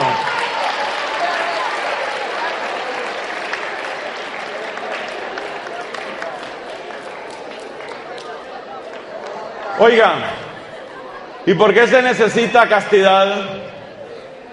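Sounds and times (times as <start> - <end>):
audience applause: 0.0 - 9.5
speech: 9.8 - 10.4, 11.4 - 13.8
laughter: 9.9 - 14.5.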